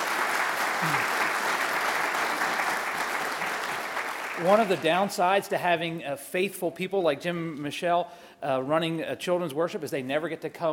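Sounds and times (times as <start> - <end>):
audience applause: 0.0 - 5.2
speech: 4.4 - 10.7.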